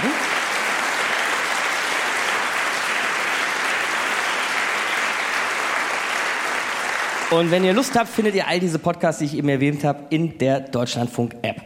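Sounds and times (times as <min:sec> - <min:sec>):
audience applause: 0:00.0 - 0:08.5
speech: 0:07.3 - 0:11.6.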